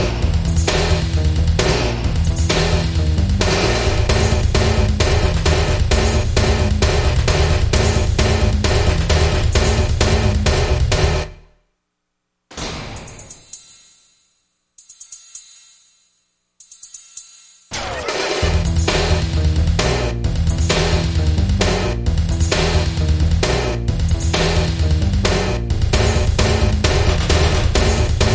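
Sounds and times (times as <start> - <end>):
bass: 0.0 - 11.5, 17.7 - 28.3
drums: 0.0 - 11.6, 16.6 - 28.3.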